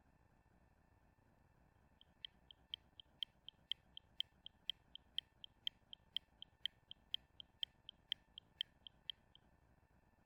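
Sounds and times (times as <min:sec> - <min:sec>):
ticking: 0:02.0 - 0:09.4.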